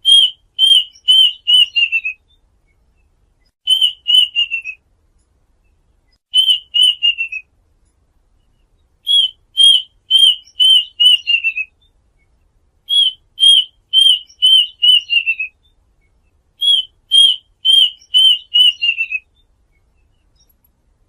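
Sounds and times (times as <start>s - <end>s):
duck whistled calls: 0.0s - 2.2s, 3.7s - 4.8s, 6.4s - 7.4s, 9.1s - 11.7s, 12.9s - 15.5s, 16.6s - 19.2s.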